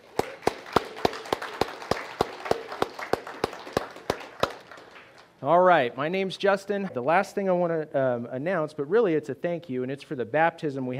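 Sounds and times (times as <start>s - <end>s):
audience applause with sharp crisp claps: 0.0s - 5.3s
speech: 5.4s - 10.9s.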